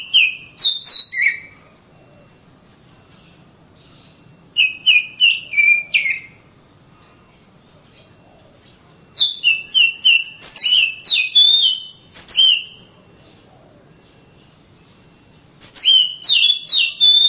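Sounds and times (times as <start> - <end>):
Oriental magpie-robin song: 0.0 - 2.4, 3.0 - 6.4, 7.8 - 17.2.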